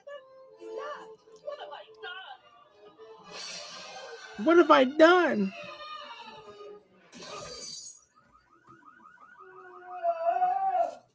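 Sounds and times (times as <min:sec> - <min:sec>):
speech: 0:04.4 - 0:05.7
car alarm going off: 0:07.6 - 0:10.1.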